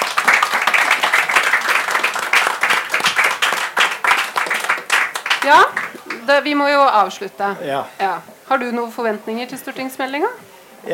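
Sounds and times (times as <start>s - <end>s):
audience applause: 0.0s - 6.7s
speech: 5.5s - 10.9s.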